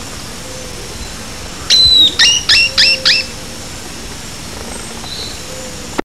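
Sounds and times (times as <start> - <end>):
bird whistling: 1.7 - 3.4.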